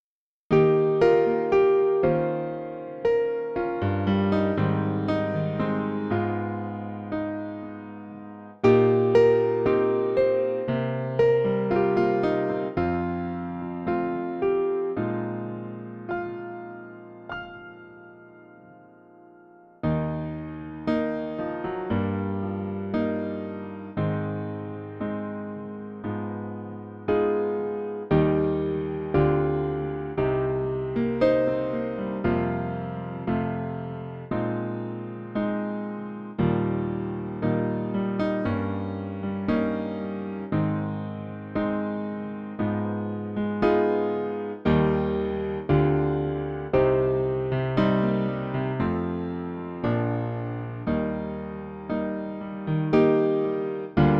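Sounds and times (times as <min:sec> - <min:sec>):
electric piano track: 0:00.5 - 0:54.1.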